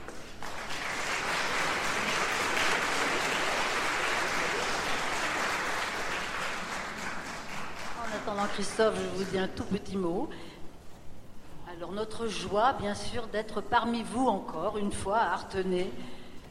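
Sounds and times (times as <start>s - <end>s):
crowd applause: 0.0s - 9.3s
speech: 8.3s - 10.5s, 11.8s - 16.2s.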